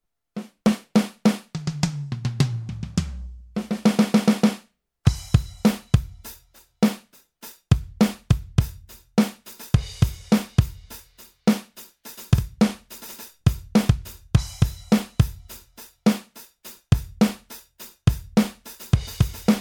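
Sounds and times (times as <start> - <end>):
Millenium MPS 750 electronic studio drum kit: 0.7 - 19.6.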